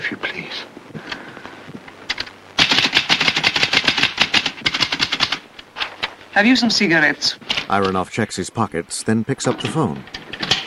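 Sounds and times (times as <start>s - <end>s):
mechanical typewriter keystrokes: 2.1s - 5.4s
speech: 6.4s - 10.2s.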